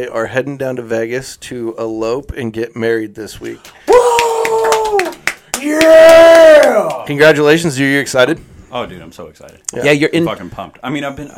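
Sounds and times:
speech: 0:00.0 - 0:04.0, 0:05.6 - 0:11.3
in-studio hand claps: 0:03.4 - 0:07.2
person whooping: 0:03.8 - 0:07.1.

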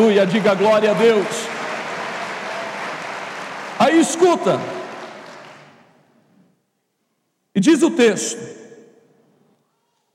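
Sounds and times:
speech: 0:00.0 - 0:01.4, 0:03.8 - 0:04.8, 0:07.6 - 0:08.6
crowd applause: 0:00.0 - 0:06.1.

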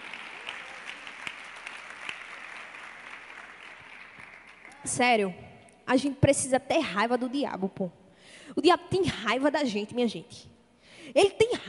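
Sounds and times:
audience clapping: 0:00.0 - 0:05.0
speech: 0:04.8 - 0:10.5, 0:11.1 - 0:11.6.

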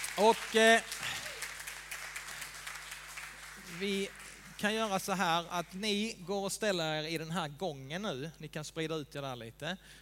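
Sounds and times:
audience applause: 0:00.0 - 0:04.9
speech: 0:00.2 - 0:01.1, 0:03.7 - 0:10.0.

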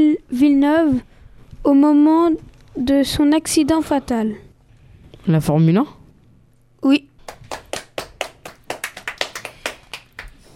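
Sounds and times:
speech: 0:00.0 - 0:04.4, 0:05.2 - 0:06.0, 0:06.8 - 0:07.1
people clapping: 0:07.2 - 0:10.5.

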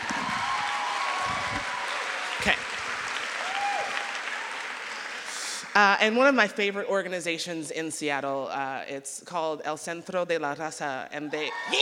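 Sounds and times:
audience clapping: 0:00.0 - 0:05.8
speech: 0:02.4 - 0:02.7, 0:05.8 - 0:11.8.

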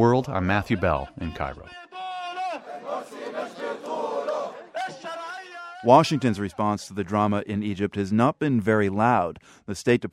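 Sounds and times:
speech: 0:00.0 - 0:01.8, 0:05.8 - 0:10.1
crowd of supporters chanting: 0:00.5 - 0:06.6.

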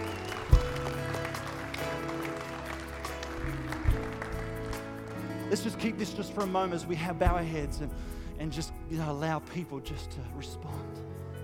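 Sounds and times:
audience cheering and clapping: 0:00.0 - 0:05.4
speech: 0:05.5 - 0:11.1.

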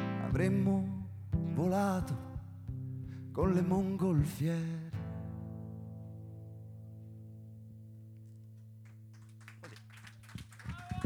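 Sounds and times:
speech: 0:00.4 - 0:01.0, 0:01.6 - 0:02.3, 0:03.4 - 0:04.9
faint audience applause: 0:08.8 - 0:11.0.

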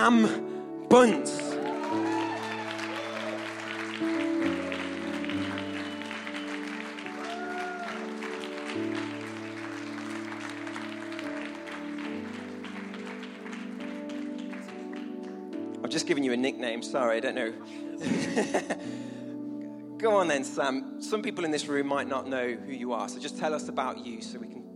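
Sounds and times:
speech: 0:00.0 - 0:02.1, 0:16.0 - 0:19.2, 0:20.0 - 0:24.7
loud sustained music with slow shifting chords: 0:00.0 - 0:24.7
crowd clapping: 0:01.2 - 0:15.8
laughter: 0:18.0 - 0:18.8.

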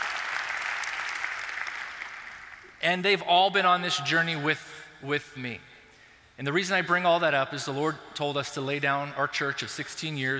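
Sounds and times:
audience applause: 0:00.0 - 0:02.6
speech: 0:02.8 - 0:05.7, 0:06.4 - 0:10.3.

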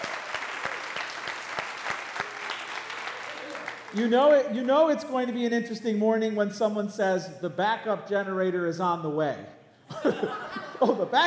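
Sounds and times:
audience applause: 0:00.0 - 0:04.4
speech: 0:03.9 - 0:11.2
laughter: 0:09.9 - 0:11.2.

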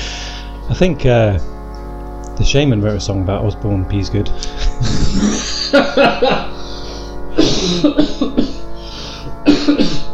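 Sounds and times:
speech: 0:00.7 - 0:01.6, 0:02.4 - 0:06.6, 0:07.4 - 0:08.4
throat clearing and coughing to shift phlegm: 0:04.4 - 0:05.6, 0:07.4 - 0:08.7, 0:09.4 - 0:10.1
laughter: 0:04.4 - 0:08.6.

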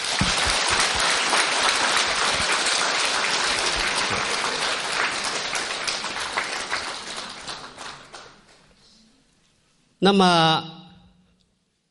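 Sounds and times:
audience applause: 0:00.0 - 0:08.7
speech: 0:10.0 - 0:10.8.

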